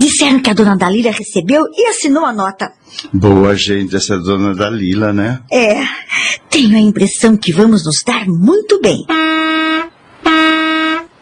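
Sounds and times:
speech: 0.1s - 10.4s
truck horn honking: 9.1s - 11.2s.

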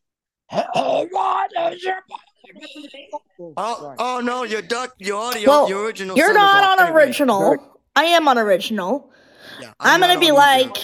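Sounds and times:
voice imitating a phoenix scream: 0.5s - 2.1s
speech: 0.8s - 10.8s.

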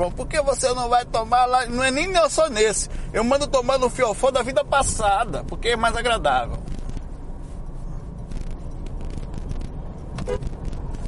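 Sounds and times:
speech: 0.0s - 6.8s
car horn honking: 10.2s - 10.6s.

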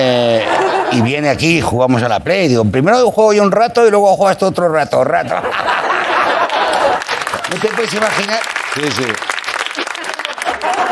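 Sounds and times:
laughter: 0.0s - 1.8s, 5.0s - 8.3s, 9.6s - 10.9s
speech: 1.0s - 5.8s, 7.5s - 9.3s
audience applause: 6.0s - 10.9s.

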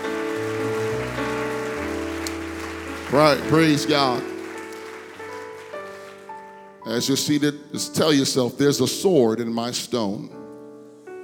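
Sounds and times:
audience clapping hands: 0.0s - 6.8s
speech: 3.1s - 4.3s, 6.9s - 10.4s.

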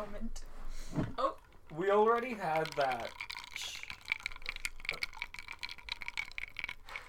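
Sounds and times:
speech: 0.0s - 3.3s
faint liquid hiss: 1.5s - 7.0s
person drinking a beverage: 2.5s - 7.0s.

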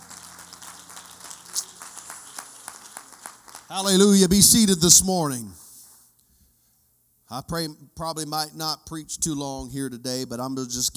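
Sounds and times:
crowd clapping hands: 0.0s - 4.7s
speech: 3.7s - 5.6s, 7.3s - 10.9s.

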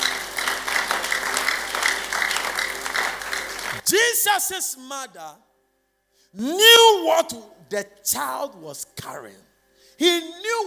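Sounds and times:
audience clapping: 0.0s - 3.8s
speech: 3.9s - 5.5s, 6.3s - 10.6s.

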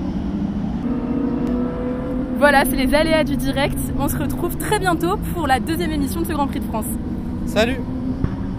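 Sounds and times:
Formula 2 race cars driving on circuit: 0.0s - 8.5s
speech: 2.4s - 7.9s.

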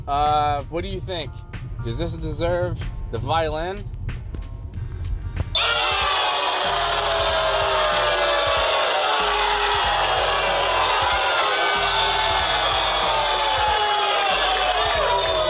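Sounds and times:
speech: 0.1s - 4.0s
angry studio audience crowd shouting and jeering sound effect: 5.6s - 15.4s.

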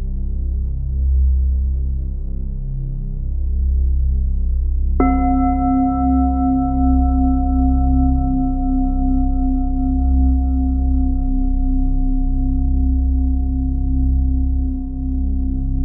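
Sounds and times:
low pulsing rumbling drone: 0.0s - 15.8s
big Tibetan singing bowl struck and ringing: 5.0s - 15.8s.

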